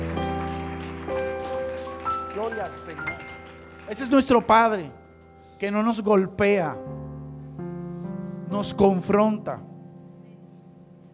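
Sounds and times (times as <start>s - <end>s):
audience applause: 0.0s - 5.0s
speech: 2.4s - 5.0s, 5.6s - 7.0s, 8.5s - 9.7s.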